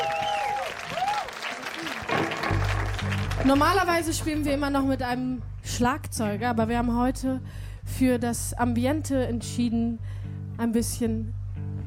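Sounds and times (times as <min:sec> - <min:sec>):
audience applause: 0:00.0 - 0:03.8
speech: 0:03.4 - 0:11.4.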